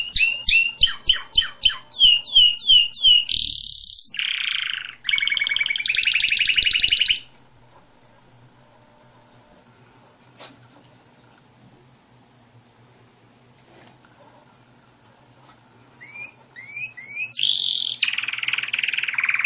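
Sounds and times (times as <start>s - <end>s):
canary song: 0.0s - 7.8s, 16.0s - 19.4s.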